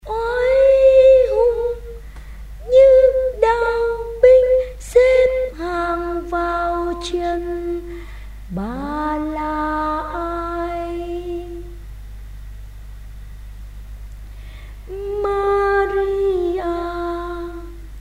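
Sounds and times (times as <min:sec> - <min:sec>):
soprano singing: 0:00.0 - 0:02.0, 0:02.6 - 0:11.8, 0:14.9 - 0:17.8.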